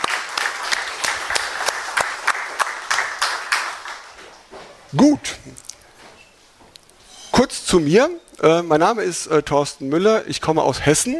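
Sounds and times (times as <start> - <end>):
audience applause for the team: 0.0 - 4.2
speech: 4.9 - 5.6, 7.4 - 11.1.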